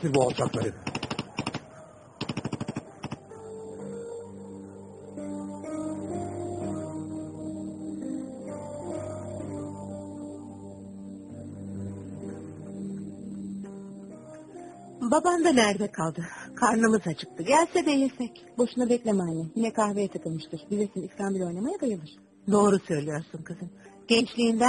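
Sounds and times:
speech: 0:00.0 - 0:01.0, 0:15.2 - 0:24.6
rapid gunfire bursts of Turkish soldiers returning fire in battle: 0:00.1 - 0:01.6, 0:02.2 - 0:03.3
sustained droning low orchestral music: 0:01.7 - 0:24.6.

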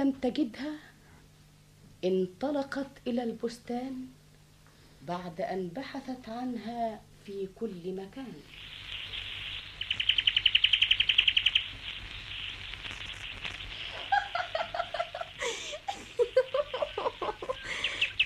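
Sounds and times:
speech: 0:00.0 - 0:00.9, 0:02.0 - 0:04.2, 0:05.0 - 0:08.7
small bird chirping: 0:08.3 - 0:14.8, 0:16.6 - 0:18.2
laughter: 0:13.9 - 0:17.9.

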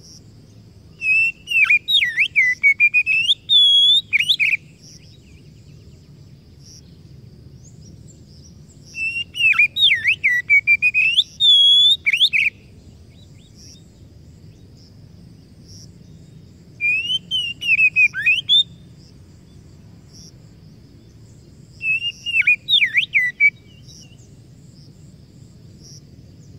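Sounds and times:
Oriental magpie-robin song: 0:00.9 - 0:06.1, 0:07.7 - 0:13.8, 0:16.1 - 0:20.2, 0:21.8 - 0:24.4.

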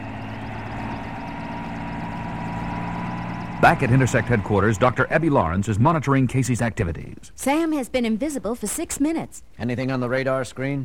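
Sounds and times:
helicopter engine starting for takeoff: 0:00.0 - 0:05.8
speech: 0:03.6 - 0:10.8.

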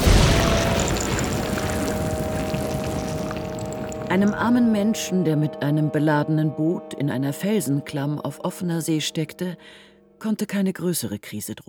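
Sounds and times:
pouring rain: 0:00.0 - 0:04.4
thunder: 0:00.0 - 0:04.4
speech: 0:04.1 - 0:11.6.

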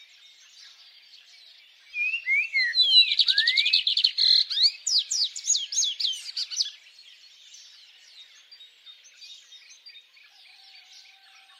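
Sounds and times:
soft dense twittering bird chorus: 0:00.0 - 0:11.5
high bird chirps: 0:02.0 - 0:06.8.

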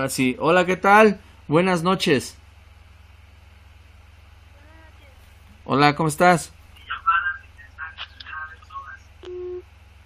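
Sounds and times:
speech: 0:00.0 - 0:02.4, 0:05.7 - 0:06.6
voices on a phone line: 0:04.5 - 0:05.2, 0:06.7 - 0:09.6
short steady mid-pitched phone disconnect beep: 0:09.2 - 0:09.6.

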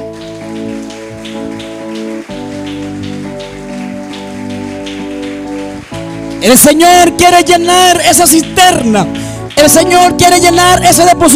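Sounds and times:
audience applause: 0:00.0 - 0:10.0
speech: 0:06.4 - 0:11.3.

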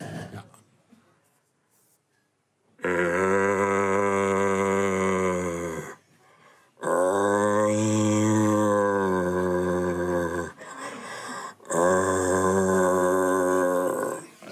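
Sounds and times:
person imitating the roar of a searching rutting stag: 0:02.8 - 0:06.0, 0:06.8 - 0:10.6, 0:11.6 - 0:14.3.

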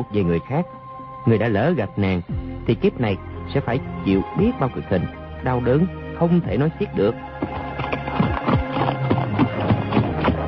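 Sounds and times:
speech: 0:00.0 - 0:07.9
horse hooves clip-clopping as two riders travel on horseback: 0:07.3 - 0:10.4.

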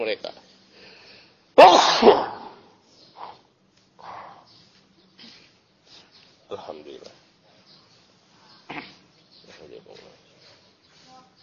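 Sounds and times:
speech: 0:00.0 - 0:00.4
sneeze: 0:01.6 - 0:02.7.

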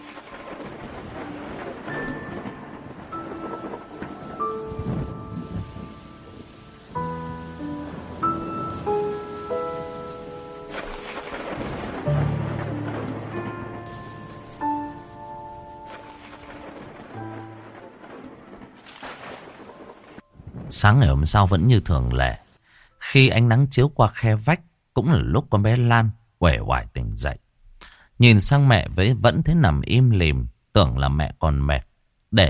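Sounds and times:
thunder: 0:00.0 - 0:21.8
rain: 0:00.0 - 0:22.9
speech: 0:20.8 - 0:22.4, 0:23.1 - 0:27.4, 0:28.2 - 0:32.4.

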